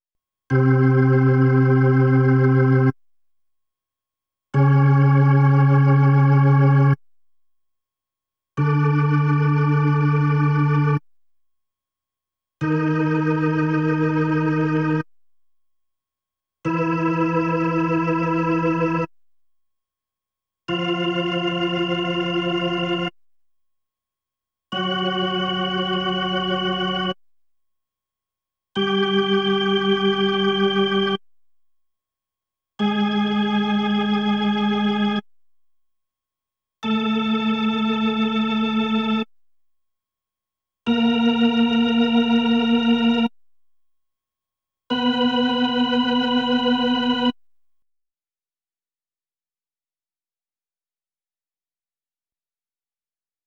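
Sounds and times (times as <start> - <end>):
Hammond B3 organ: 0.5 - 2.9, 4.6 - 7.0, 8.6 - 11.0, 12.6 - 15.0, 16.7 - 19.1, 20.7 - 23.1, 24.8 - 27.2, 28.8 - 31.2, 32.8 - 35.2, 36.8 - 39.3, 40.9 - 43.3, 44.9 - 47.4.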